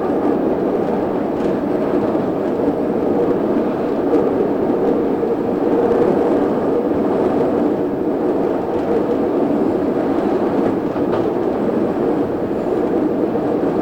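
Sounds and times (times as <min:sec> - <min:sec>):
train: 0:00.0 - 0:13.7.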